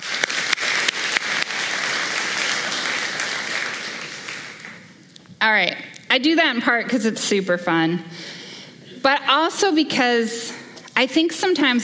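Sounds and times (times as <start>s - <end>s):
crowd applause: 0.0s - 5.0s
sharp individual claps: 0.0s - 5.0s
speech: 5.4s - 8.3s, 9.0s - 10.4s, 11.0s - 11.8s.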